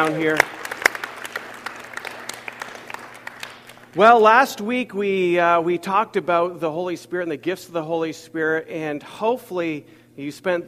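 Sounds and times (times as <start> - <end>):
speech: 0.0 - 0.6, 4.0 - 10.6
church congregation clapping to welcome guests during a service: 0.0 - 4.4.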